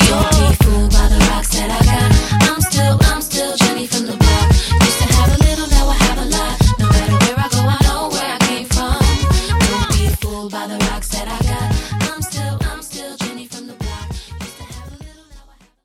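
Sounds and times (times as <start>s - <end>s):
party dance music intro at 100 BPM: 0.0s - 12.2s.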